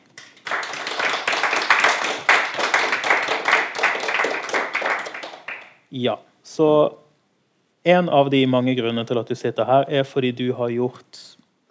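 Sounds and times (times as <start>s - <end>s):
audience applause: 0.2s - 5.8s
speech: 5.9s - 7.0s, 7.8s - 11.3s.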